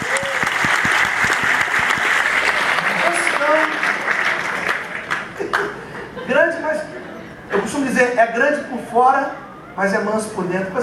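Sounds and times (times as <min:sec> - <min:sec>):
audience applause: 0:00.0 - 0:05.8
laughter: 0:04.4 - 0:07.6
speech: 0:07.9 - 0:10.8.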